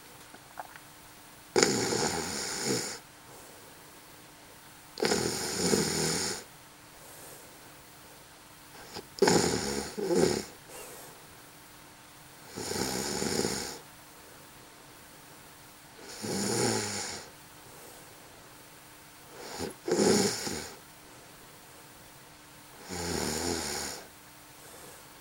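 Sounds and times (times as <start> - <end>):
woman snoring: 1.6 - 3.0, 5.0 - 6.5, 8.8 - 10.6, 12.5 - 13.8, 16.0 - 17.3, 19.3 - 20.8, 22.8 - 24.1.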